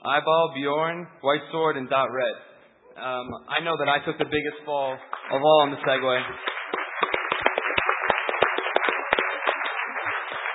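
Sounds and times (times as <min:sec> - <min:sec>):
speech: 0:00.0 - 0:06.6
audience applauding: 0:05.0 - 0:10.5.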